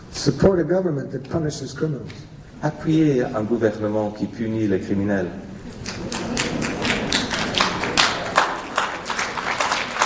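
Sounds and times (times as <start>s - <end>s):
speech: 0.2s - 6.2s
crowd applauding: 5.7s - 10.0s.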